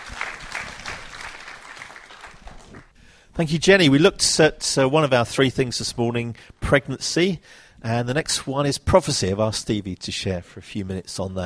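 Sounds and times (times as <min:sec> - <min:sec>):
round of applause: 0:00.0 - 0:03.0
speech: 0:03.4 - 0:11.4.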